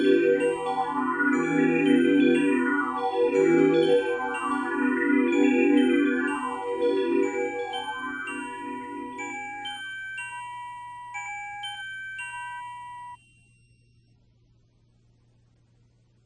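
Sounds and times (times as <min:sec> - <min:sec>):
Casio keyboard sequence: 0:00.0 - 0:12.8.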